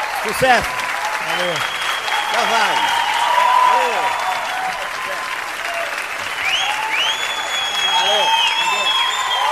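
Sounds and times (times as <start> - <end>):
audience applause: 0.0 - 9.5
speech: 0.2 - 3.0, 3.8 - 5.3.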